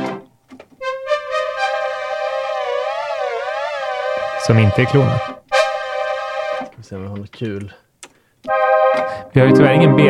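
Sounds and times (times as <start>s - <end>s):
Korg Polysix analog synthesizer being played: 0.8s - 6.7s, 8.5s - 10.0s
speech: 4.5s - 5.4s, 6.9s - 7.8s, 9.0s - 10.0s.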